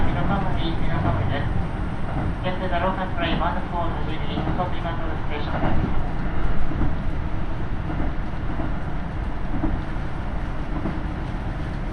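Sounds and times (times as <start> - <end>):
people talking aboard a KiHa 75 diesel railcar: 0.0 - 1.5, 2.4 - 6.0
KiHa 75 diesel railcar engine and running gear rumble on the Taita Line: 0.0 - 11.9.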